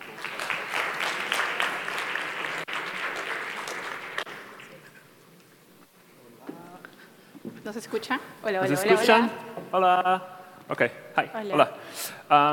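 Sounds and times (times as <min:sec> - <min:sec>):
audience applause: 0:00.0 - 0:05.0
speech: 0:07.7 - 0:12.5.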